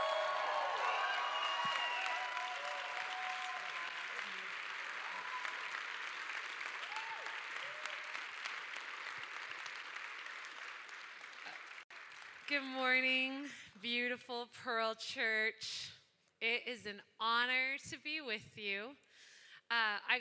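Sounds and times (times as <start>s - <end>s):
audience clapping loudly: 0.0s - 13.0s
speech: 12.5s - 19.0s, 19.7s - 20.1s.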